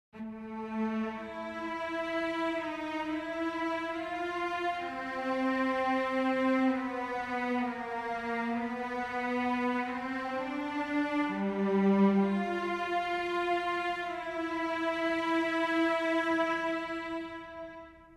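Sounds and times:
cello playing legato: 0.2s - 18.1s.

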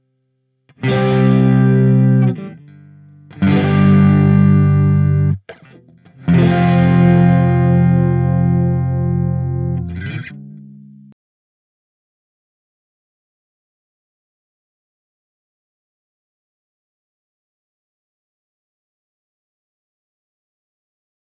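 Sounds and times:
Strato guitar through Marshall amplifier: 0.7s - 11.1s.

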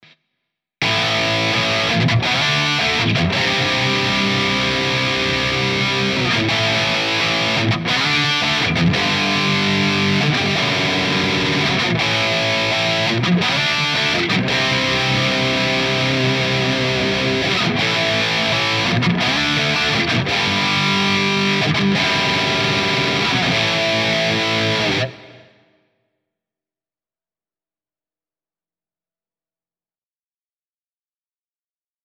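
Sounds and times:
Soldano high gain rhythm playing: 0.8s - 25.2s.

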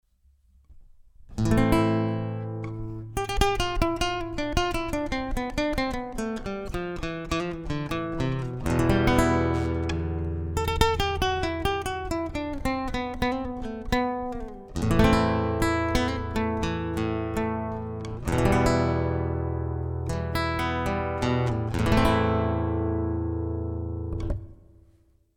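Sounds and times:
nylon guitar picking through Fishman Aura Spectrum: 0.7s - 25.0s.

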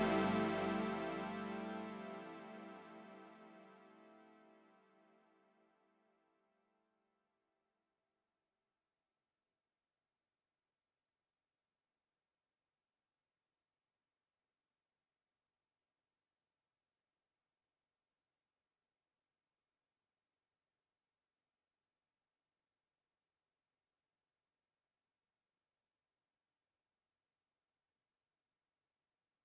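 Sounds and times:
stereo Moog synthesizer: 0.0s - 5.3s.

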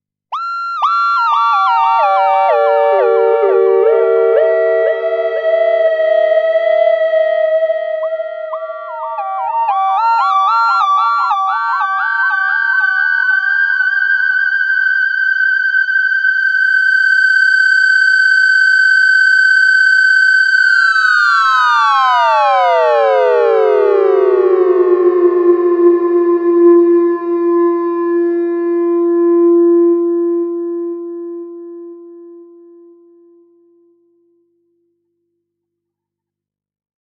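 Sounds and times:
recorder with controller and echo: 0.4s - 35.2s.

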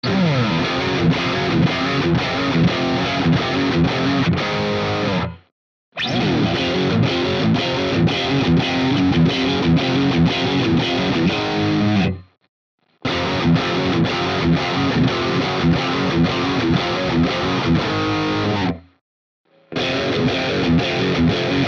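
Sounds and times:
Jackson PRO PLUS Soloist SLA3 electric guitar high gain riff: 0.0s - 5.4s, 6.0s - 12.3s, 13.0s - 18.9s, 19.7s - 21.6s.

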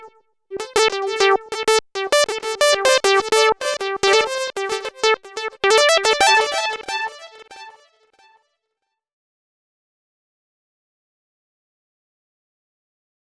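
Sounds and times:
digital delay effect: 0.6s - 7.8s.

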